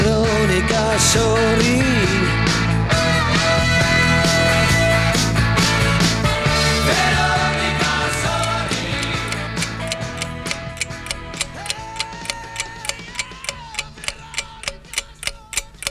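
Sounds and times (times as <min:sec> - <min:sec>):
music: 0:00.0 - 0:15.8
speech: 0:01.0 - 0:02.4
clock ticking: 0:08.2 - 0:15.8.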